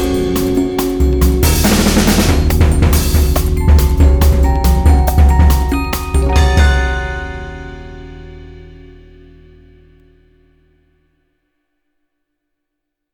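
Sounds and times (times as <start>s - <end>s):
ME-20B guitar effects patch: 0.0s - 8.9s.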